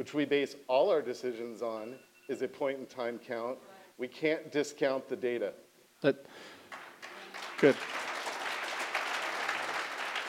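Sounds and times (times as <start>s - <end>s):
speech: 0.0s - 6.6s, 7.6s - 8.0s
faint audience applause at a candidates' forum: 6.6s - 10.2s.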